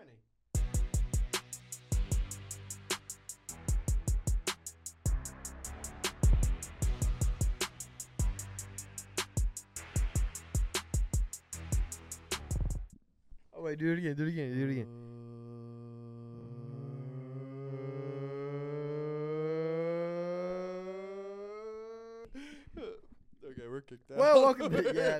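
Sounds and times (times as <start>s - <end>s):
loud rhythmic music with punchy beats: 0.6s - 12.9s
speech: 13.6s - 15.3s, 24.4s - 25.1s
voice imitating a tornado siren: 14.8s - 22.3s
laughter: 24.2s - 25.1s.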